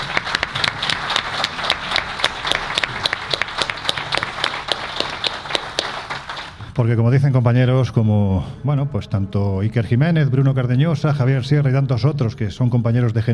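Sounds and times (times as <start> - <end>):
audience applause: 0.0 - 6.7
speech: 6.8 - 13.3.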